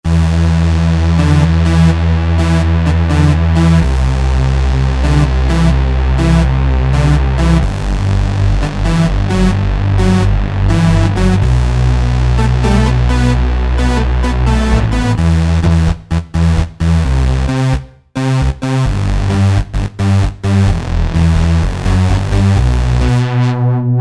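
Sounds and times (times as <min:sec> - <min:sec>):
sloppy bass: 0:00.0 - 0:23.9.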